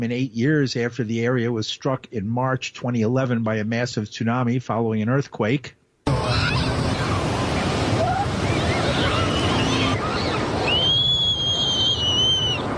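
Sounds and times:
speech: 0:00.0 - 0:05.8
children shouting and playing at a beach: 0:06.1 - 0:12.7
long high-pitched scream: 0:06.1 - 0:12.7
surf: 0:06.1 - 0:12.7.

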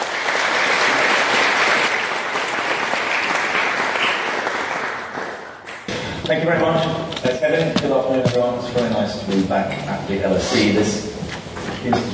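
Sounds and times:
audience at the London School of Economics applauding David Miliband: 0:00.0 - 0:05.9
speech: 0:06.3 - 0:11.1, 0:11.8 - 0:12.1.

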